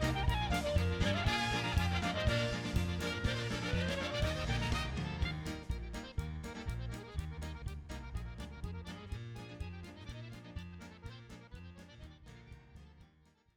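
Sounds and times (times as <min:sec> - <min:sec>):
clarinet playing a polka: 0:00.0 - 0:12.4.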